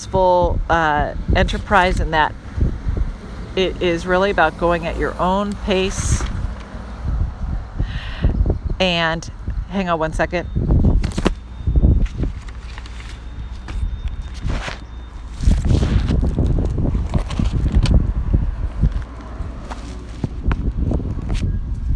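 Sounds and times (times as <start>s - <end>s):
speech: 0.0s - 2.5s, 3.6s - 6.3s, 8.8s - 10.6s
gusty wind on microphone: 0.0s - 21.9s
rustling: 12.0s - 17.9s, 18.8s - 20.5s.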